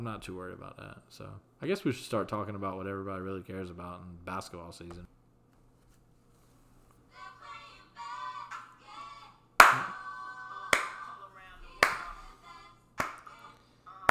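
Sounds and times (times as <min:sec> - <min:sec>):
speech: 0:00.0 - 0:05.2
hand clapping: 0:09.6 - 0:10.1, 0:10.7 - 0:11.1, 0:11.8 - 0:12.3, 0:13.0 - 0:13.3.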